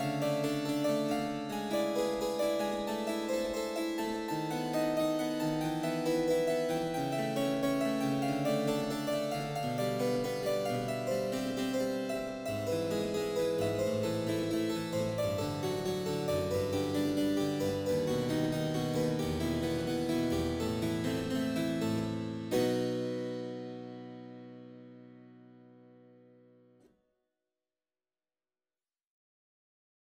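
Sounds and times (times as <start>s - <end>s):
harpsichord concerto: 0.0s - 23.5s.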